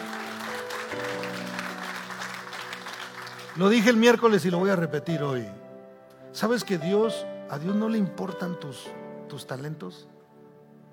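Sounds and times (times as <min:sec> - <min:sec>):
audience applause: 0:00.0 - 0:04.3
speech: 0:00.9 - 0:01.2, 0:03.6 - 0:05.6, 0:06.4 - 0:10.1.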